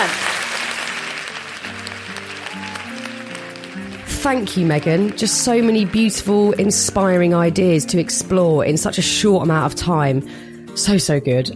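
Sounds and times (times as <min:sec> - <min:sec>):
audience applause: 0:00.0 - 0:07.2
speech: 0:04.2 - 0:11.5.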